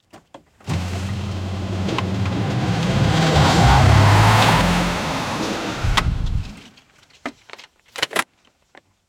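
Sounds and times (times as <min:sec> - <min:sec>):
crashing into a car: 0:00.7 - 0:06.7.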